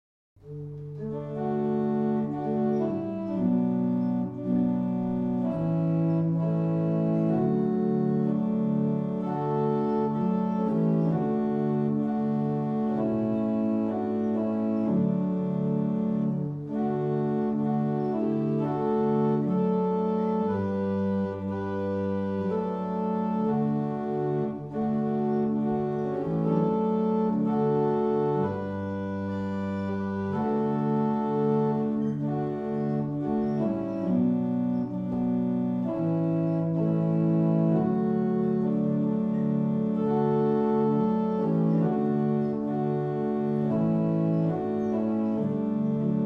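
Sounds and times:
barrel organs: 0.4 - 46.2.

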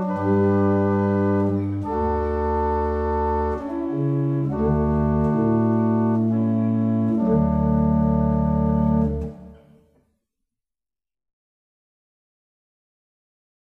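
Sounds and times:
barrel organ playing a double chant: 0.0 - 9.6.

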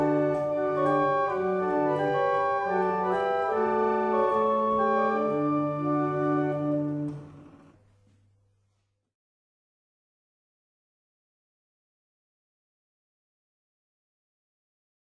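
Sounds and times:
hymn played on barrel organs: 0.0 - 7.7.

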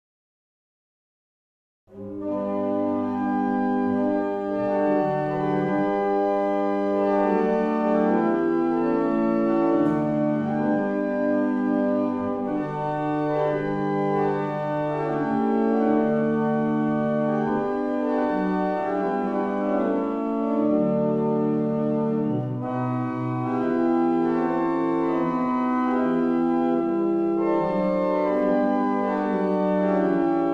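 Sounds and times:
barrel organs in Hanover: 2.0 - 30.5.

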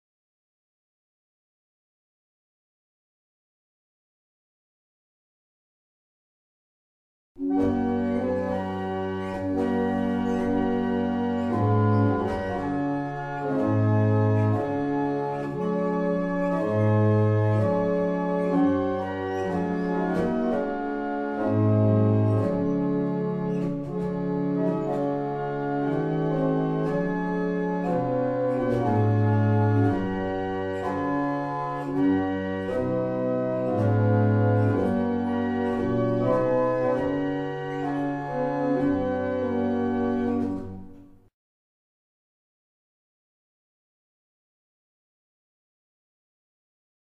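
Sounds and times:
barrel organs: 7.4 - 41.2.

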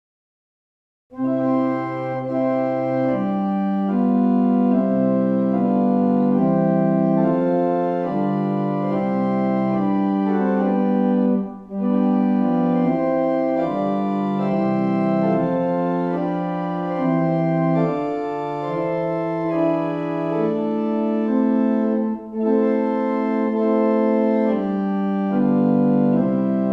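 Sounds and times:
barrel organ: 1.1 - 26.7.

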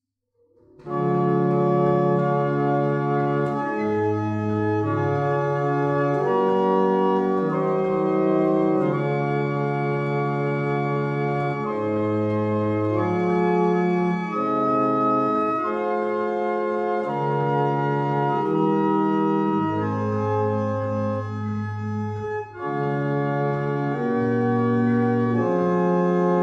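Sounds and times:
barrel organs: 0.8 - 26.4.

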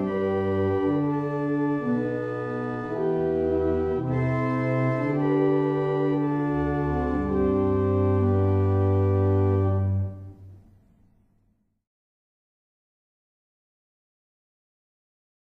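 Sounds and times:
barrel organs playing: 0.0 - 10.8.

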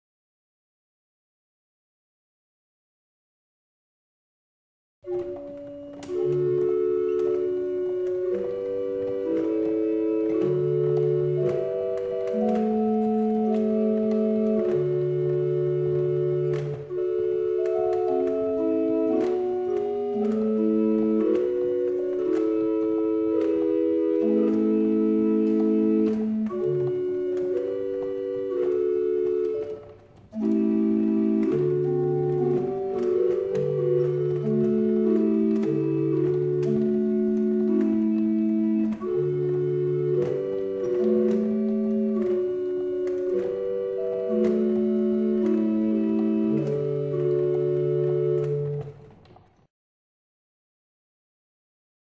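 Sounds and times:
barrel organ: 5.0 - 49.2.

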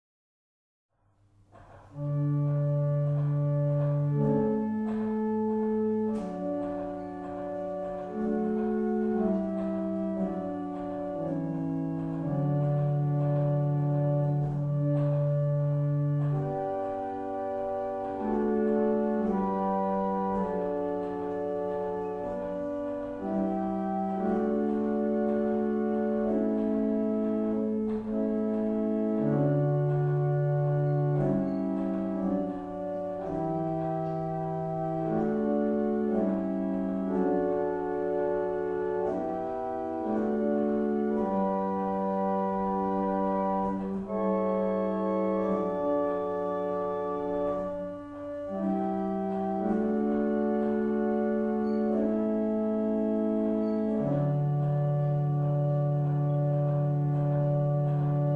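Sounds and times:
barrel organs playing in Carlisle: 1.5 - 58.3.

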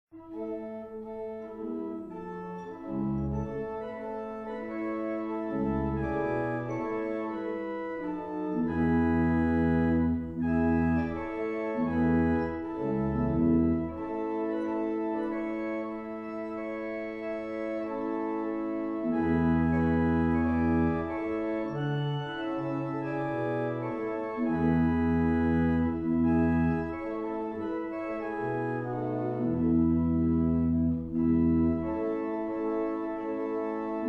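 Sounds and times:
barrel organs: 0.1 - 34.0.

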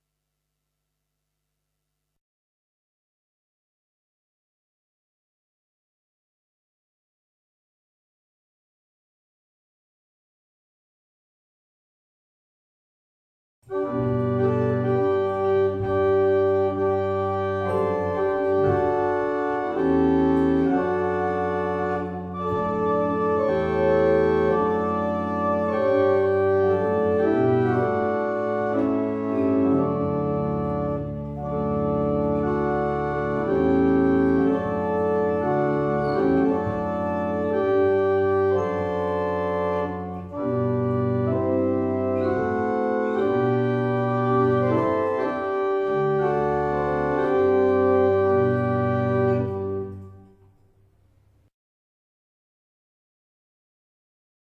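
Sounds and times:
barrel organs playing a morning hymn: 13.6 - 50.5.

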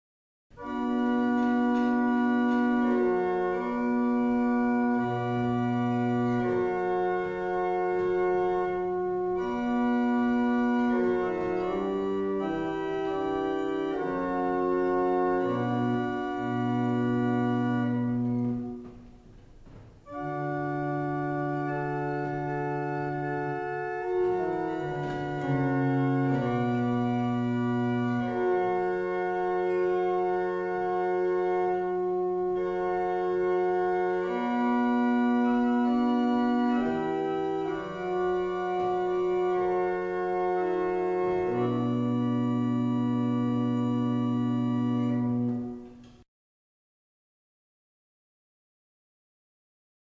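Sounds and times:
barrel organs playing a double chant: 0.6 - 46.1.

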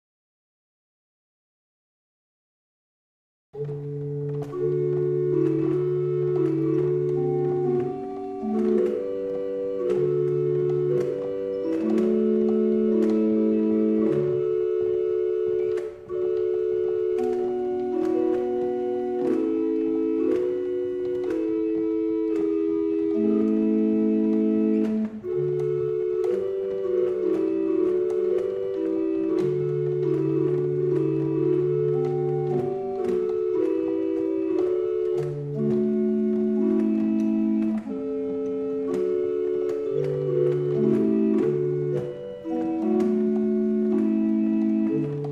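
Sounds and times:
barrel organ: 3.6 - 45.3.

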